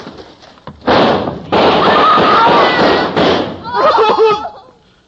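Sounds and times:
gunshot into the ceiling: 0.9 - 3.8
laughter: 3.7 - 4.7.

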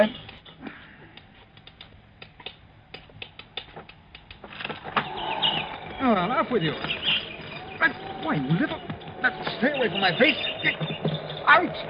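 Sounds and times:
speech: 0.0 - 0.2, 6.1 - 7.1, 7.8 - 11.8
window rattling: 4.5 - 11.8.

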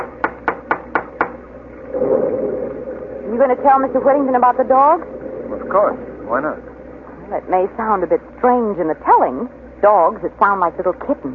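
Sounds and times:
knocking on a door: 0.0 - 1.4
speech: 3.4 - 5.1, 5.7 - 6.7, 7.3 - 11.3.

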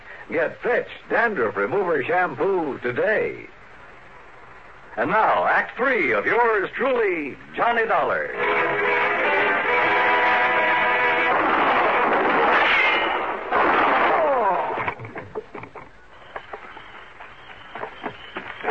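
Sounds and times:
speech: 0.3 - 3.6, 5.0 - 8.7
music: 8.4 - 11.4
gunshots in a radio drama: 11.2 - 14.8.

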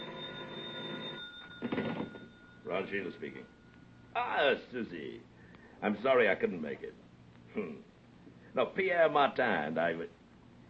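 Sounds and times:
telephone bell ringing: 0.0 - 4.2
speech: 2.7 - 3.6, 4.2 - 7.0, 7.6 - 7.9, 8.5 - 10.2.

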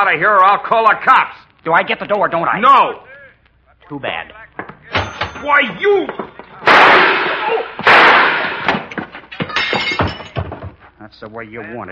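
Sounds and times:
speech: 0.0 - 3.1, 3.9 - 8.0, 11.0 - 11.9
quieter clattering knocks and bangs: 4.5 - 11.0
loud gunshots: 6.6 - 8.9.

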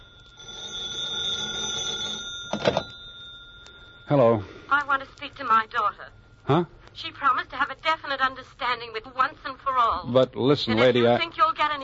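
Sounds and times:
telephone ringing with electronic trill: 0.0 - 6.3
telephone receiver being picked up: 2.3 - 3.0
speech: 2.6 - 2.8, 4.1 - 11.8.

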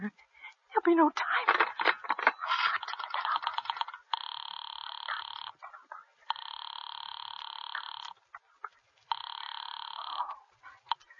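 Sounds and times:
speech: 0.9 - 1.5
telephone ringing in long electronic bursts: 1.4 - 5.6, 6.3 - 8.2, 9.1 - 11.0.

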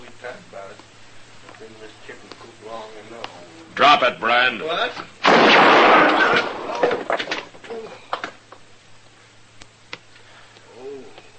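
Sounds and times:
speech: 3.8 - 6.5
gunshot: 5.2 - 7.3.

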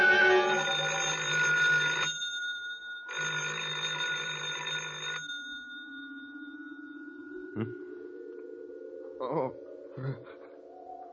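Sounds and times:
telephone ringing: 0.2 - 8.6
low electronic hum: 6.2 - 11.1.

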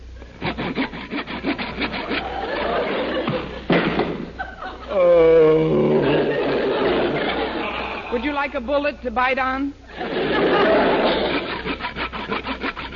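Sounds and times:
saw cutting through a wooden coffee table: 0.3 - 2.7, 10.6 - 12.9
laughter: 2.0 - 8.4, 9.9 - 11.8
thuds: 3.3 - 4.3
speech: 8.4 - 10.4.

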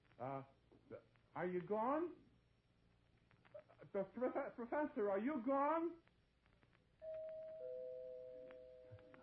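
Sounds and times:
faint hiss: 0.0 - 9.2
speech: 0.2 - 2.2, 3.9 - 6.1
two-note doorbell chime: 7.1 - 9.1.

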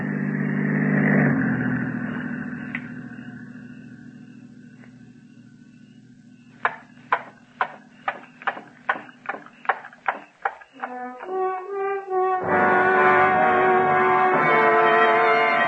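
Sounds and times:
patrol car engine humming: 0.0 - 15.6
sharp knocks: 6.6 - 11.3.

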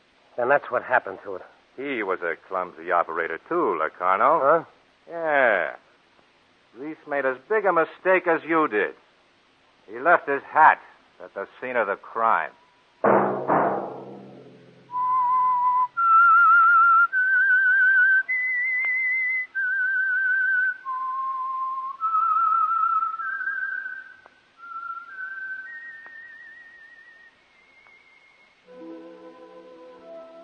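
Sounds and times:
speech: 0.4 - 5.8, 6.8 - 9.0, 9.9 - 13.4
low thump: 13.0 - 15.0
whistled program theme melody: 14.9 - 30.4.

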